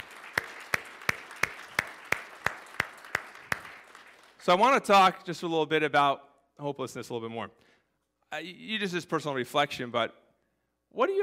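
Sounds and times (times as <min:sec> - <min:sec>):
audience applause: 0:00.0 - 0:04.6
speech: 0:04.4 - 0:07.6, 0:08.3 - 0:10.2, 0:10.9 - 0:11.2.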